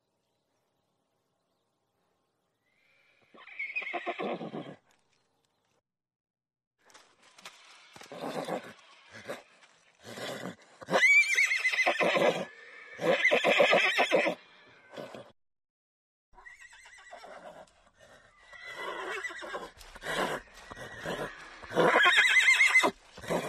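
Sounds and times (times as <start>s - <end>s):
horse neighing: 3.3s - 4.8s, 8.0s - 15.3s, 16.4s - 23.4s
speech: 3.9s - 4.8s.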